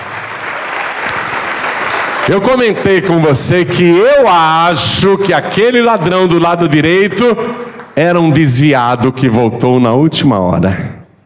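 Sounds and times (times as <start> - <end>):
audience applauding: 0.0 - 3.5, 7.5 - 8.3
speech: 2.3 - 10.9.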